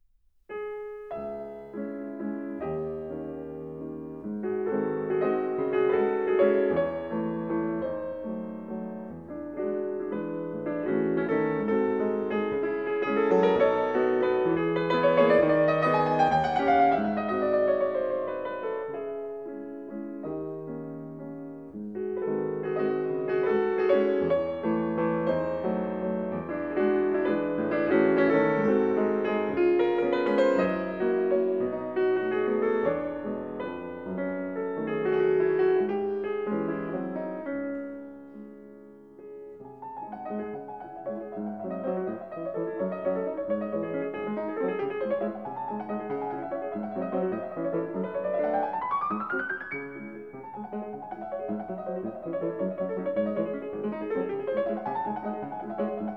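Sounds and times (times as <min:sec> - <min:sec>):
waltz in C-sharp minor: 0:00.5 - 0:56.1.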